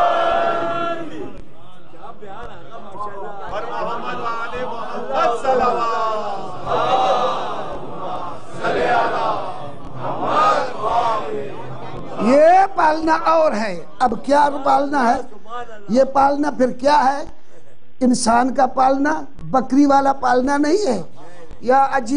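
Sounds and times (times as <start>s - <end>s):
crowd chanting in response to a slogan: 0.0s - 12.8s
speech: 13.1s - 15.3s, 15.9s - 17.4s, 18.0s - 22.1s.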